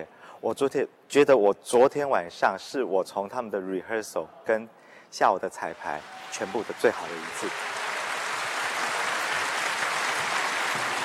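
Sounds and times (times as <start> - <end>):
speech: 0.0 - 7.8
enthusiastic audience applause after a concert performance: 5.8 - 11.0.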